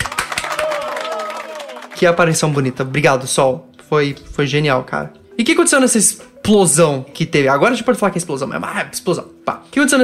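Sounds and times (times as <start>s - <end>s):
faint cheer: 0.0s - 2.0s
hands clapping: 0.0s - 2.7s
speech: 2.0s - 10.0s.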